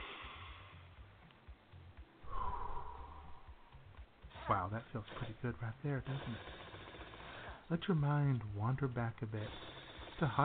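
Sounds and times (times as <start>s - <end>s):
deep slow breathing in through the nose and out through the mouth: 0.0s - 0.9s, 2.2s - 4.0s, 6.4s - 7.7s
speech: 4.5s - 6.7s, 7.7s - 10.4s.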